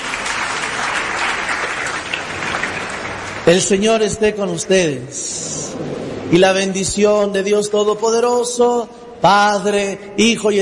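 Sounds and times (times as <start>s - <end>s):
applause: 0.0s - 4.2s
speech: 3.5s - 10.6s.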